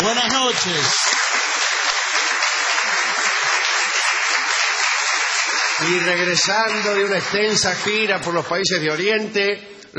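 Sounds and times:
audience applause ovation: 0:00.0 - 0:08.7
speech: 0:00.1 - 0:01.2, 0:05.8 - 0:09.9.

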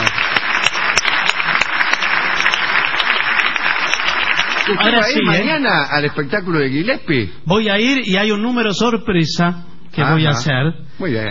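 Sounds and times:
audience clapping: 0:00.0 - 0:05.5
speech: 0:04.7 - 0:11.2.

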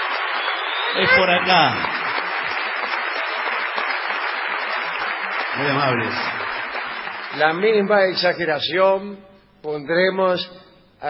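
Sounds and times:
large crowd ovation applause in theater: 0:00.0 - 0:08.2
speech: 0:00.9 - 0:02.0, 0:05.6 - 0:06.4, 0:07.3 - 0:11.0.

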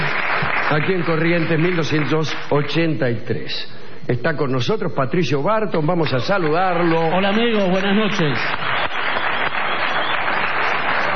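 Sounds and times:
audience applause in the main hall of a theater: 0:00.0 - 0:02.5, 0:06.2 - 0:11.1
speech: 0:00.7 - 0:08.7.

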